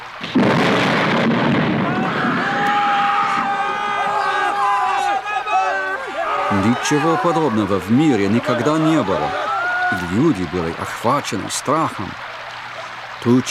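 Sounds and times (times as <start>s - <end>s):
heavy rain: 0.0s - 13.4s
thunder crash: 0.2s - 4.3s
several voices wailing: 1.8s - 13.4s
laughter: 3.6s - 12.2s
speech: 6.6s - 12.3s, 13.2s - 13.4s.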